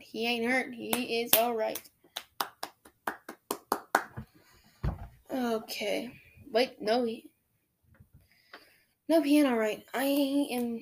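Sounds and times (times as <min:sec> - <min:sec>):
speech: 0:00.1 - 0:02.0, 0:05.3 - 0:07.3, 0:09.1 - 0:10.8
hand clapping: 0:00.9 - 0:04.4.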